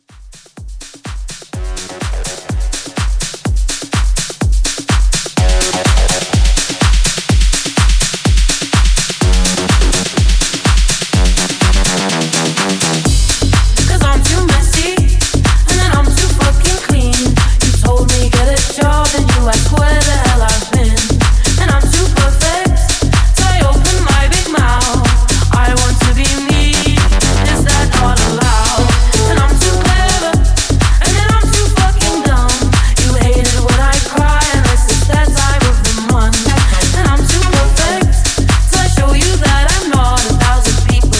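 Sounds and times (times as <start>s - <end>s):
house music mashup at 125 BPM: 0.0s - 41.1s.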